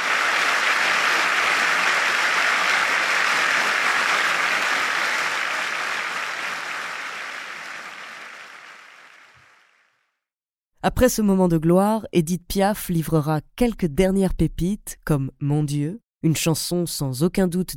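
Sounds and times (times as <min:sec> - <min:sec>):
concert audience standing ovation in the stalls after a song: 0:00.0 - 0:09.8
speech: 0:10.9 - 0:17.7.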